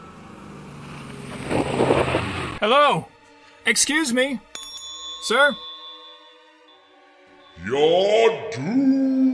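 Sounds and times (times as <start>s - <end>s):
car engine rumbling as a vehicle pulls into a gas station: 0.0s - 2.6s
speech: 2.6s - 4.5s, 5.2s - 5.7s, 7.6s - 9.2s.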